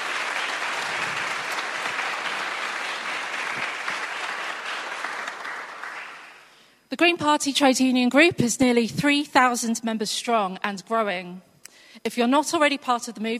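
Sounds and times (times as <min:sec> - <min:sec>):
round of applause: 0:00.0 - 0:06.6
speech: 0:06.9 - 0:13.3.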